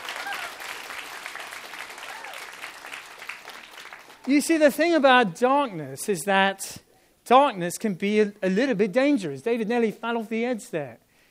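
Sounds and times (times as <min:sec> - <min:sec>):
round of applause: 0:00.0 - 0:04.3
speech: 0:04.2 - 0:11.0.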